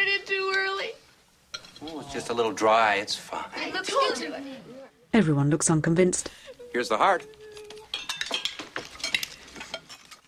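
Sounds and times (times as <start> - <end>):
cutlery clinking and scraping on plates while eating: 1.5 - 2.1, 7.6 - 10.2
speech: 2.1 - 7.4.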